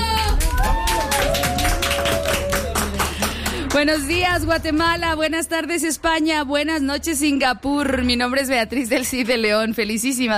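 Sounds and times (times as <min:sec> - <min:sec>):
audience applause: 0:00.0 - 0:04.1
speech: 0:03.8 - 0:10.3.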